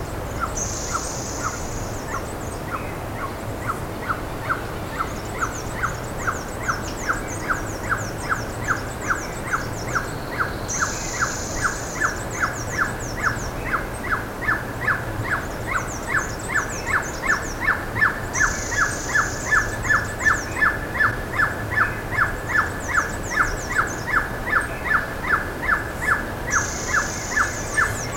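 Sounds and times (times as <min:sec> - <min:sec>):
high rapid twittering: 0:00.4 - 0:02.9, 0:03.6 - 0:28.1.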